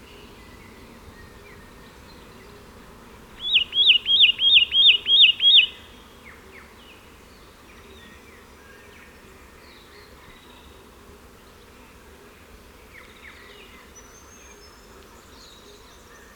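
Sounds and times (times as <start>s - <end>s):
Satin Flycatcher Myiagra cyanoleuca calling: 3.4s - 6.1s.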